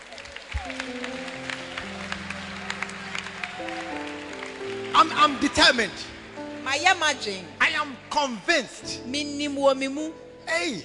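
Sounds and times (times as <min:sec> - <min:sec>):
audience clapping: 0:00.0 - 0:07.2
speech: 0:05.0 - 0:10.8.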